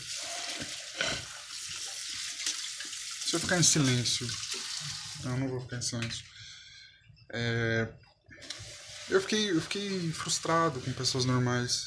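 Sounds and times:
dishes being washed under a running tap: 0.0s - 5.4s, 8.4s - 11.5s
running tap hissing: 0.0s - 5.4s, 8.4s - 11.4s
speech: 3.3s - 4.4s, 5.2s - 6.3s, 7.3s - 8.0s, 9.1s - 11.8s.

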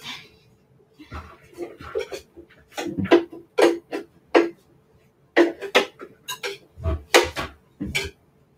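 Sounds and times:
utensil scraping blended pumpkin blondie batter into a big mixing bowl: 1.1s - 4.5s, 5.4s - 8.1s.

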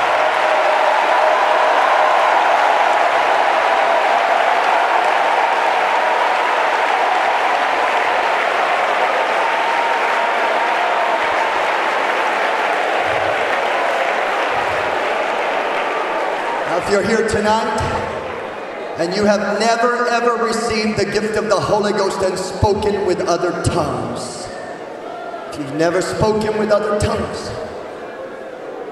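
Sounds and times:
audience clapping: 0.0s - 19.0s
speech: 16.9s - 18.0s, 19.0s - 24.4s, 25.6s - 27.7s.

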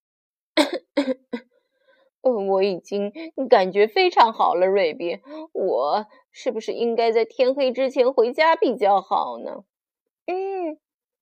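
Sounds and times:
choking cough: 0.6s - 1.4s
speech: 2.2s - 9.7s, 10.3s - 10.8s.

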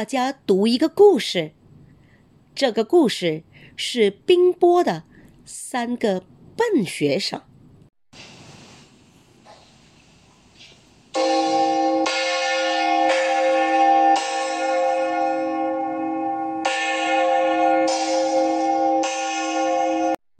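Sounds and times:
speech: 0.0s - 1.6s, 2.6s - 7.5s
school bell being rung: 11.2s - 20.2s.

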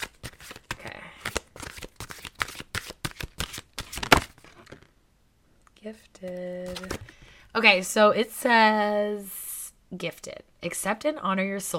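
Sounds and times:
new deck of oracle cards being shuffled: 0.0s - 4.9s, 6.3s - 7.2s
speech: 5.8s - 11.7s.

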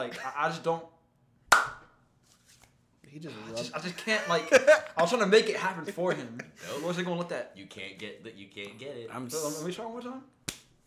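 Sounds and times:
speech: 0.0s - 1.0s, 3.1s - 10.8s
single hand clap: 1.5s - 1.9s, 10.5s - 10.7s
laughter: 3.3s - 7.1s.

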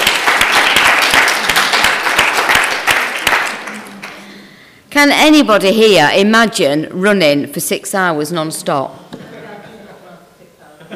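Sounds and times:
round of applause: 0.0s - 4.3s
speech: 5.0s - 9.1s.

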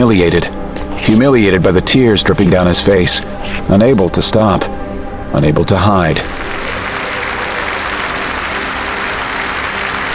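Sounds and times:
speech: 0.0s - 6.5s
crowd clapping: 6.2s - 10.1s.

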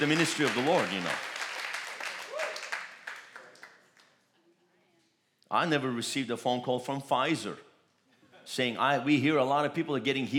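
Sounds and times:
speech: 0.0s - 1.3s, 5.5s - 7.7s, 8.5s - 10.3s
audience hand claps: 0.0s - 4.2s.

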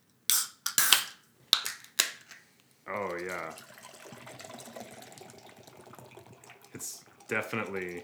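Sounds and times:
beer can cracking open with a sharp hiss: 0.3s - 2.5s
beer fizzy splashing pours: 0.8s - 8.0s
speech: 2.9s - 3.7s, 6.8s - 8.0s.

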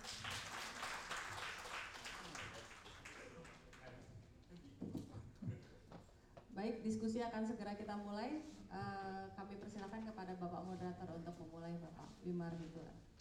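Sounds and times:
crowd applause: 0.0s - 3.4s
speech: 6.6s - 13.1s.

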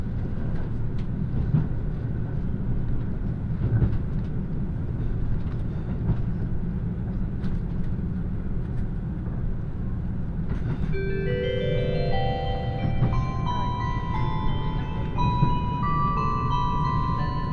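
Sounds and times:
Kiha 85 diesel express Nanki No. 6 rumbling on the Kansai Main Line: 0.0s - 17.5s
stepped rising whine: 11.0s - 17.5s.

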